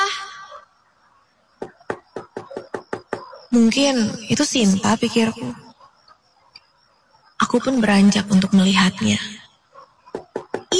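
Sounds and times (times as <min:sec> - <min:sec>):
knocking on a bedroom door at night: 0:01.6 - 0:03.3, 0:10.1 - 0:10.7
speech: 0:03.6 - 0:05.6, 0:07.6 - 0:09.4.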